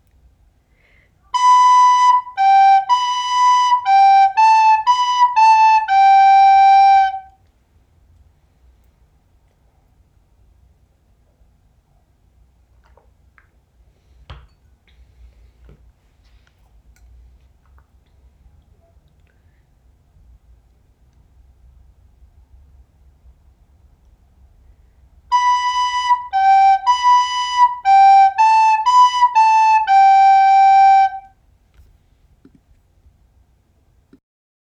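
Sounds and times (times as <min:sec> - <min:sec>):
descant recorder playing a waltz: 0:01.3 - 0:07.4, 0:25.3 - 0:31.3.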